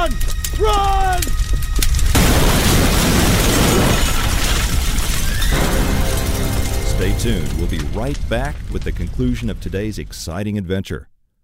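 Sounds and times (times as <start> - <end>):
crashing, shattering debris: 0.1 - 10.2
propane tank exploding beside a burning ATV: 2.1 - 10.4
speech: 7.2 - 11.1.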